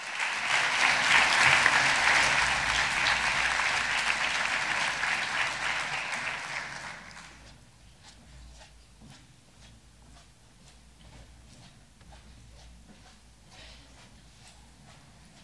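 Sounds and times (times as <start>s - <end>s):
audience applause: 0.0s - 7.4s.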